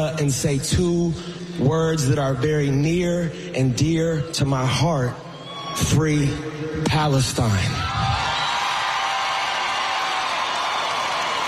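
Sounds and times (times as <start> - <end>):
speech: 0.0 - 5.2, 5.8 - 8.2
stadium crowd cheering: 7.4 - 11.4.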